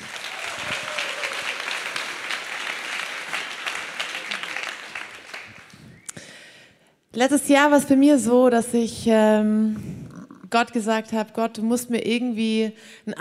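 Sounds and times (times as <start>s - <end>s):
audience applause on stage: 0.0s - 6.0s
speech: 7.2s - 9.9s, 10.5s - 13.1s.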